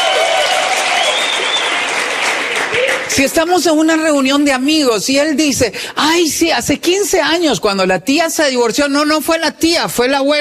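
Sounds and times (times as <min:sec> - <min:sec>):
audience applause: 0:00.0 - 0:03.2
speech: 0:03.2 - 0:10.3.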